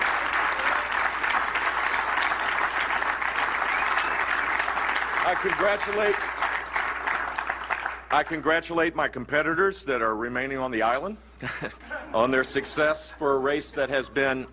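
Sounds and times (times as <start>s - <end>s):
loud applause from a large audience: 0.0s - 8.1s
speech: 5.3s - 6.3s, 8.1s - 14.5s.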